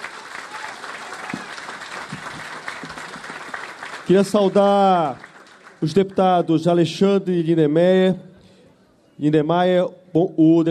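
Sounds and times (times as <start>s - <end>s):
applause: 0.0s - 6.7s
speech: 4.1s - 8.3s, 9.2s - 10.6s.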